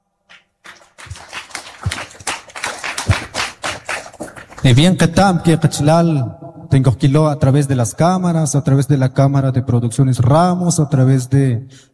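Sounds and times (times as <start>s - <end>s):
audience applause: 0.6s - 4.7s
speech: 4.6s - 11.9s.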